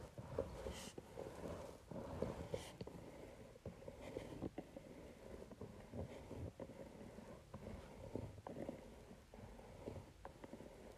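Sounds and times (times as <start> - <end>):
facial roller rolling on paper: 0.0 - 10.9.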